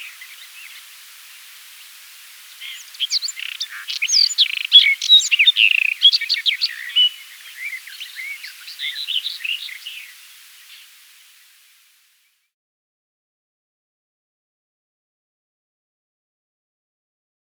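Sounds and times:
White-throated robin song: 0:00.0 - 0:11.4.

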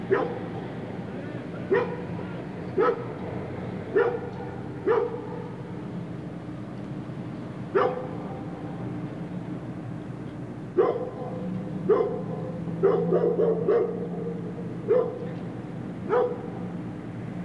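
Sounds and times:
dog barking: 0:00.1 - 0:00.5, 0:01.7 - 0:02.1, 0:02.8 - 0:03.2, 0:03.9 - 0:05.7, 0:07.7 - 0:08.4, 0:10.8 - 0:15.4, 0:16.0 - 0:16.7.

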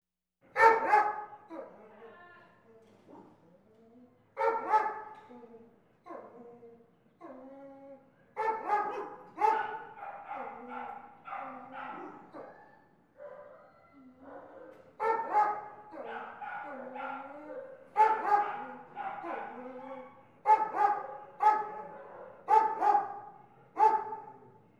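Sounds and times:
dogs barking: 0:00.6 - 0:01.5, 0:04.4 - 0:05.2, 0:08.4 - 0:24.4.

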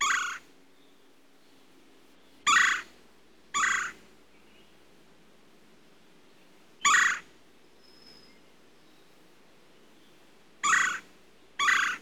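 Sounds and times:
red-bellied woodpecker harsh buzzy rolling churr calls: 0:00.0 - 0:00.4, 0:02.5 - 0:02.8, 0:03.6 - 0:04.0, 0:06.8 - 0:07.2, 0:10.6 - 0:11.0, 0:11.6 - 0:12.0.

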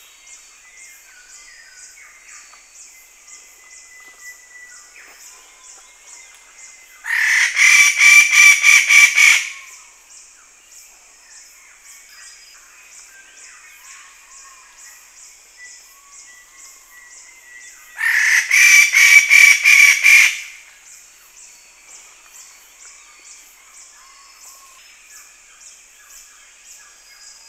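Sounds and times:
Wallace's standardwing honking calls: 0:07.1 - 0:09.5, 0:18.0 - 0:20.5.

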